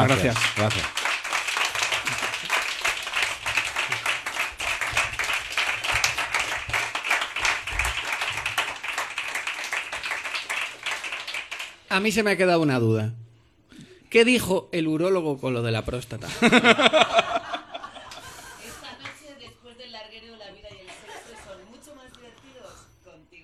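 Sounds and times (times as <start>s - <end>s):
speech: 0.0s - 1.0s, 11.9s - 13.2s, 14.1s - 17.3s
audience applause: 0.0s - 11.9s
laughter: 16.3s - 19.1s, 20.8s - 21.7s.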